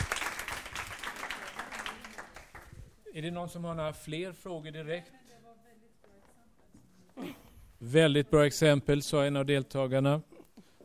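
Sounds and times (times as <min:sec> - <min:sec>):
audience applause: 0:00.0 - 0:02.7
speech: 0:03.2 - 0:05.2, 0:07.9 - 0:10.3.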